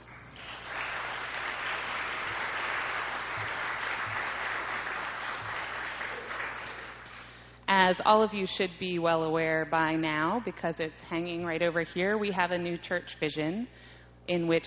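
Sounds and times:
audience applause: 0:00.0 - 0:07.3
speech: 0:07.8 - 0:14.6.

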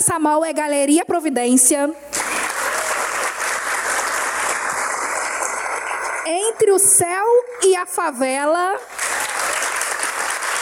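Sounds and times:
speech: 0:00.0 - 0:02.1, 0:06.3 - 0:09.0
audience applause: 0:02.1 - 0:06.6, 0:08.9 - 0:10.6.

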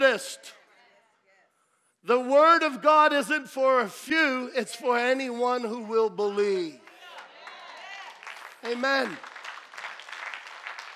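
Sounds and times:
speech: 0:00.1 - 0:00.6, 0:02.0 - 0:06.8, 0:08.6 - 0:09.3
audience clapping: 0:06.6 - 0:10.9.

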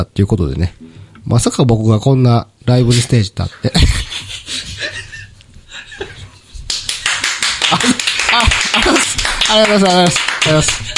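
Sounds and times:
speech: 0:00.0 - 0:04.1, 0:07.7 - 0:10.9
audience applause: 0:06.7 - 0:10.9.

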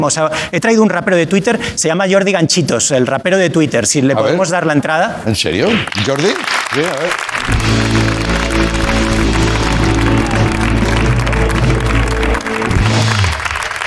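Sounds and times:
speech: 0:00.0 - 0:08.0
sparse audience applause: 0:05.8 - 0:13.8
music with deep sustained bass line: 0:07.5 - 0:13.5.

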